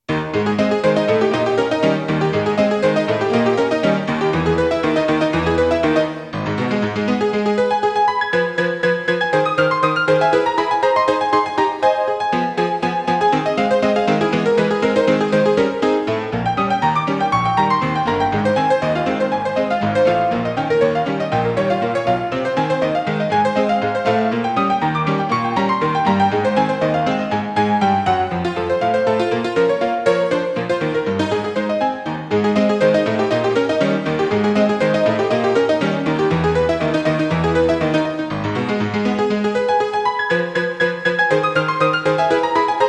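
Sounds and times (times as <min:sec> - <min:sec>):
player piano: 0:00.0 - 0:42.8.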